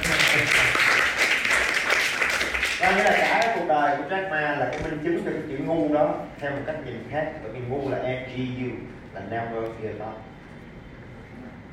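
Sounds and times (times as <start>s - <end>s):
audience applause at a Vietnamese-language motivational talk: 0.0s - 3.5s
speech: 2.9s - 10.3s.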